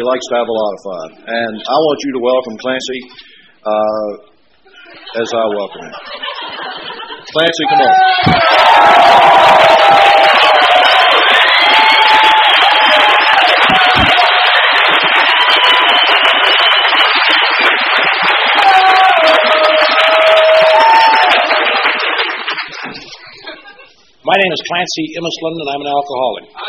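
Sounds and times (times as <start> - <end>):
speech: 0.0 - 4.3, 4.9 - 6.3, 7.3 - 10.0, 24.3 - 26.6
laughter: 4.7 - 8.6, 22.6 - 24.0
crowd at an AA gathering cheering, whooping and applauding: 7.7 - 23.1.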